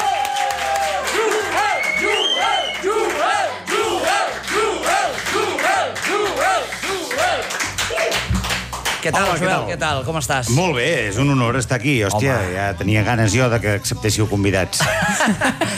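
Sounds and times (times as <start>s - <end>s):
audience cheering: 0.0s - 8.3s
audience applause: 0.0s - 9.4s
speech: 9.0s - 15.7s
laughter: 14.8s - 15.7s.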